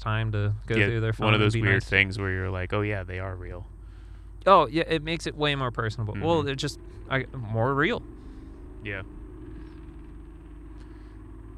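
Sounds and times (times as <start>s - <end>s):
speech: 0.0s - 3.8s, 4.4s - 8.2s, 8.8s - 9.2s
loud straight-pipe exhaust of passing vehicle: 0.0s - 11.5s.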